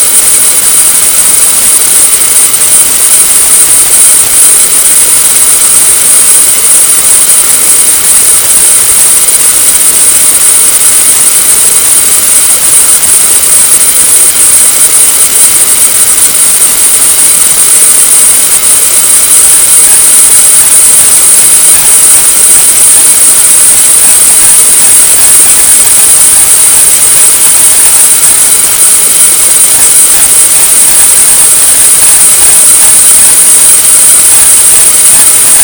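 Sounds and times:
TV static: 0:00.0 - 0:35.6.

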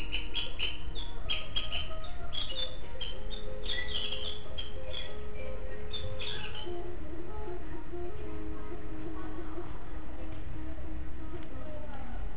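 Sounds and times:
white-rumped shama singing whistles and chirps: 0:00.0 - 0:12.3.

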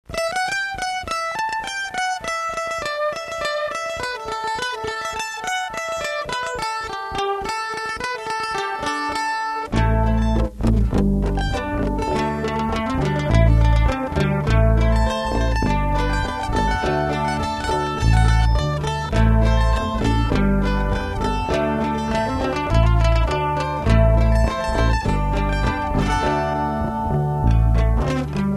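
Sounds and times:
mandolin: 0:00.0 - 0:28.5.

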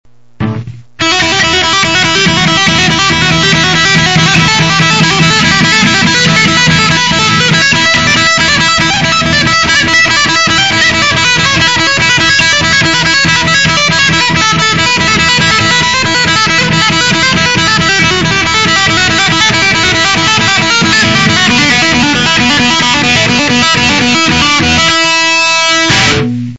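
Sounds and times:
quick electric lick: 0:00.3 - 0:26.5.

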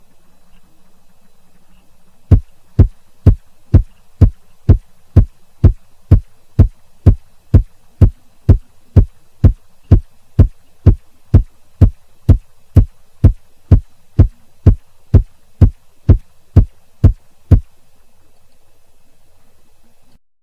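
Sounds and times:
bass drum: 0:02.3 - 0:17.7.

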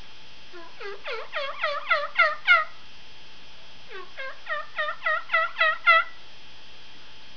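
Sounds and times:
turkey calling yelp: 0:00.6 - 0:02.8, 0:03.9 - 0:06.2.

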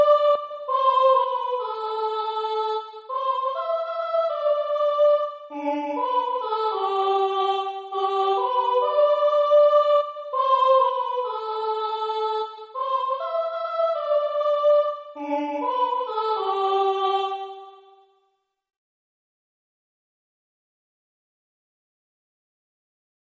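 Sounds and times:
soprano singing: 0:00.0 - 0:17.9.

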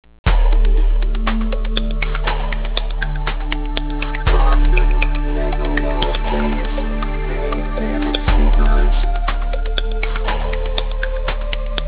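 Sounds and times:
bass: 0:00.0 - 0:11.8.

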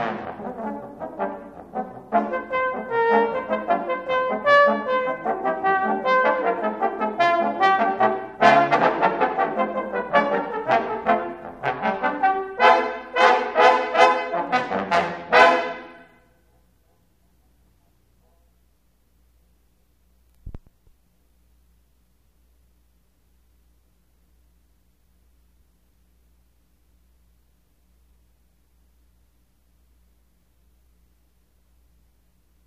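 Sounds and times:
quartet playing: 0:00.0 - 0:16.2.

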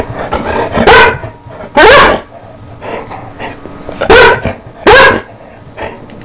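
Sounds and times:
dog barking: 0:00.8 - 0:02.3, 0:04.1 - 0:05.3.

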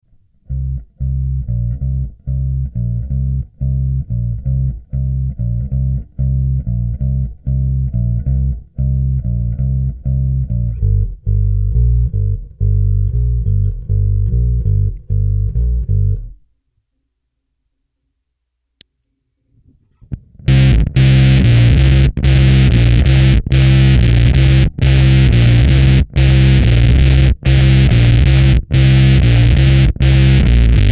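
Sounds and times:
bass: 0:00.0 - 0:16.6, 0:19.5 - 0:30.9.

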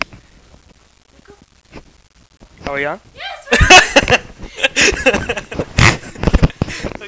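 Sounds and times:
person laughing: 0:03.5 - 0:06.5.

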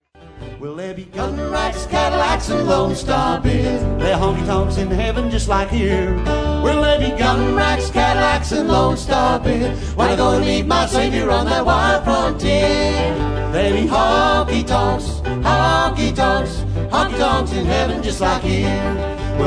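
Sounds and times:
honky tonk music: 0:00.2 - 0:19.4.

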